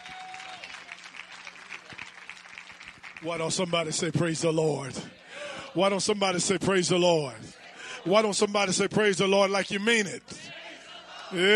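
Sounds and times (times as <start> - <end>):
audience applause welcoming a speaker in Woodward, Oklahoma: 0.0 - 4.1
speech: 3.2 - 5.2, 5.8 - 10.4, 11.3 - 11.5.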